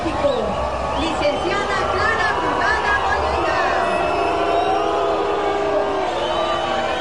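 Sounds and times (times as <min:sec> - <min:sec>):
large crowd booing: 0:00.1 - 0:07.0.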